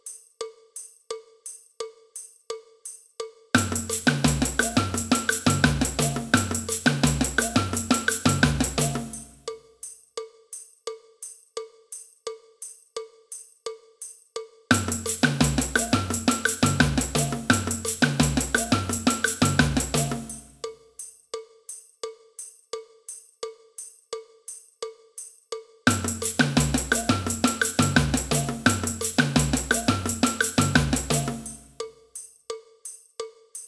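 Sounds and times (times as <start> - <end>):
cowbell: 0.0 - 33.6
samba band: 3.6 - 9.4, 14.7 - 20.6, 25.9 - 31.8.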